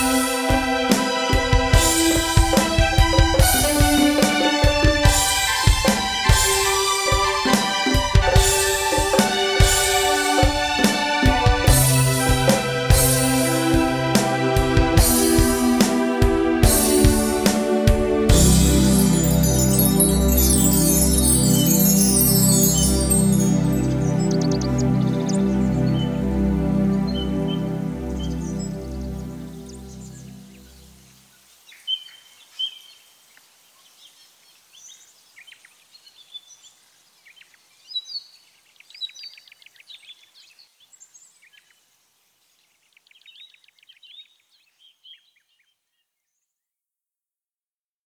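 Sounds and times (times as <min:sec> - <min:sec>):
strings: 0:00.0 - 0:30.7.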